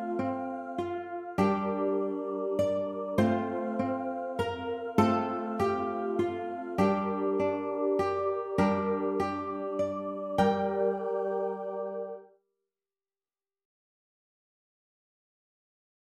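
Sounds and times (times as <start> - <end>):
ukulele: 0.0 - 12.1.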